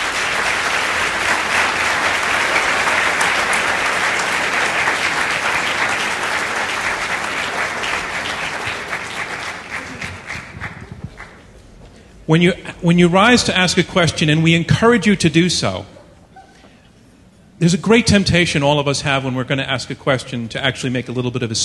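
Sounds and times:
audience applause: 0.0 - 11.6
speech: 12.3 - 16.0, 17.6 - 21.6.

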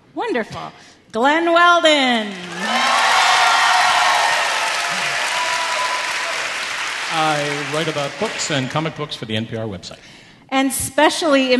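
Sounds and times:
speech: 0.2 - 2.9, 7.1 - 11.5
audience applause: 2.2 - 9.0
faint cheers: 2.3 - 8.5.

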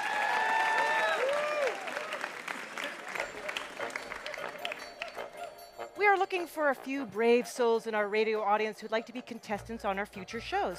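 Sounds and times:
audience applause for radio puzzle quiz show contestants: 0.0 - 5.2
speech: 6.0 - 10.7.

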